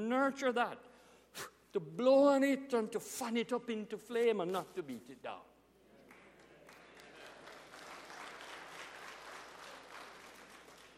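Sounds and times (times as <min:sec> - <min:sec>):
speech: 0:00.0 - 0:05.5
people clapping: 0:06.0 - 0:10.9.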